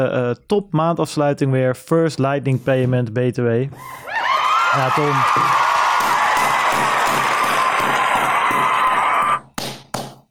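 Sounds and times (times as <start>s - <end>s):
speech: 0.0s - 5.7s
applause and cheering sound effect: 4.1s - 9.4s.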